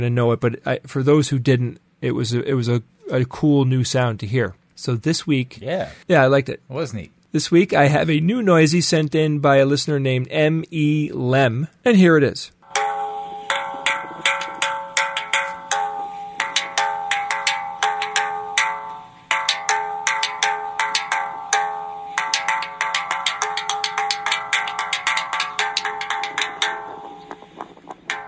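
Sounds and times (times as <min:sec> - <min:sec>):
speech: 0:00.0 - 0:12.6
gong from Kung Fu show: 0:12.6 - 0:28.2.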